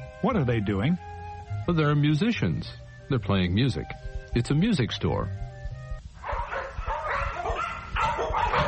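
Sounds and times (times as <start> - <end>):
speech: 0.3 - 5.4
dog barking in a pet shop: 6.2 - 8.6.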